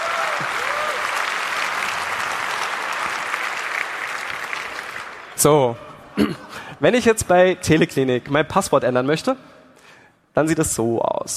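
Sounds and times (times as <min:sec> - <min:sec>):
audience applause: 0:00.0 - 0:05.4
speech: 0:05.4 - 0:09.5, 0:10.4 - 0:11.3.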